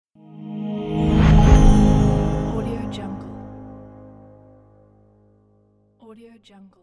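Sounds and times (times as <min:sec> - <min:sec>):
news logo sound effect: 0:00.2 - 0:05.1.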